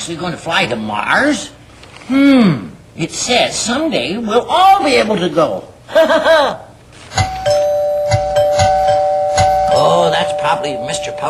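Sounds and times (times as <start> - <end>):
speech: 0.0 - 7.2, 9.9 - 11.2
doorbell ringing: 7.2 - 11.2.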